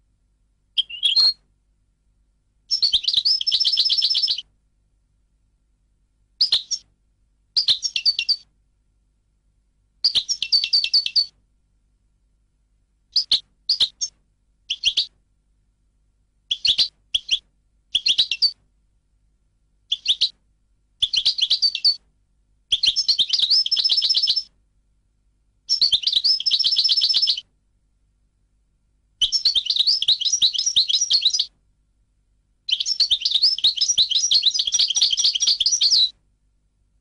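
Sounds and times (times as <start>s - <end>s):
European goldfinch calls and song: 0.8s - 1.4s, 2.7s - 4.4s, 6.4s - 6.8s, 7.6s - 8.4s, 10.0s - 11.3s, 13.1s - 14.1s, 14.7s - 15.1s, 16.5s - 17.4s, 18.0s - 18.6s, 19.9s - 20.3s, 21.0s - 22.0s, 22.7s - 24.5s, 25.7s - 27.4s, 29.2s - 31.5s, 32.7s - 36.1s.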